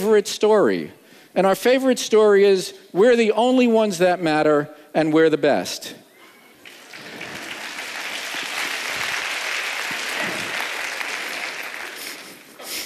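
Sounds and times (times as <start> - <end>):
speech: 0.0 - 6.0
audience applause: 6.6 - 12.8.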